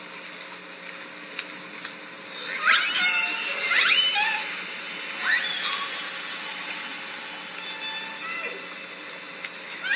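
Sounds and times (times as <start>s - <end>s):
Southern Resident killer whale calls underwater at Lime Kiln: 2.4s - 9.0s, 9.8s - 9.9s.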